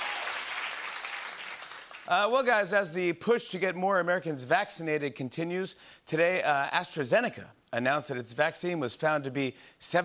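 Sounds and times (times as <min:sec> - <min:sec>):
studio audience applause: 0:00.0 - 0:02.4
speech: 0:02.1 - 0:10.0.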